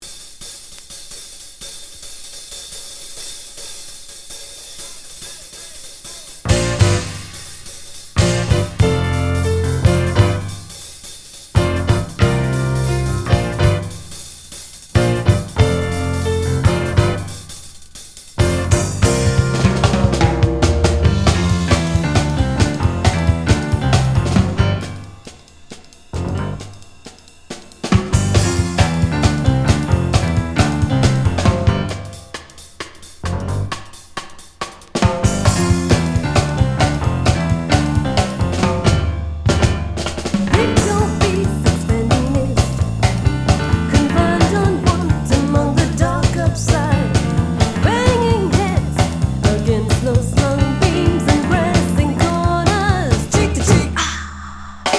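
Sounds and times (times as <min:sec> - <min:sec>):
swing music: 0:00.0 - 0:54.1.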